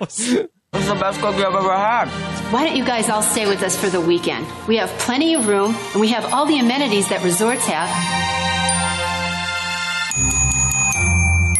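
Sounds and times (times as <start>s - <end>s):
speech: 0.0s - 8.5s
loud bells jingling: 5.1s - 11.5s.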